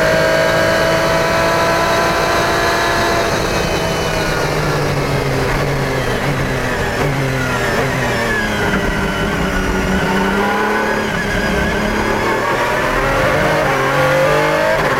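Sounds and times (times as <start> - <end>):
2009 Lola-Aston Martin LMP1 V12 race car engine roaring at Monza: 0.0 - 14.9
rough mechanical rumble and chassis noise: 3.0 - 13.9.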